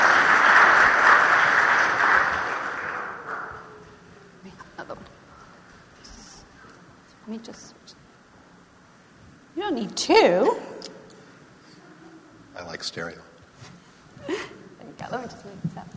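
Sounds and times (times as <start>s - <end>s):
audience applause: 0.0s - 4.2s
speech: 7.4s - 7.7s, 9.8s - 10.6s, 12.8s - 13.3s.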